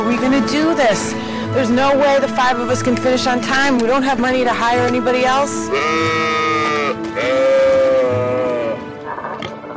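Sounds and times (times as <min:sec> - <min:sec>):
speech: 0:00.2 - 0:06.4
alpaca bleat-like cries: 0:05.6 - 0:09.4.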